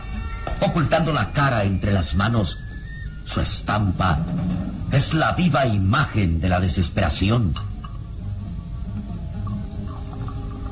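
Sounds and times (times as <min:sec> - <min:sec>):
speech: 0:00.6 - 0:02.7, 0:03.3 - 0:07.7
liquor pouring into a glass: 0:08.9 - 0:10.6.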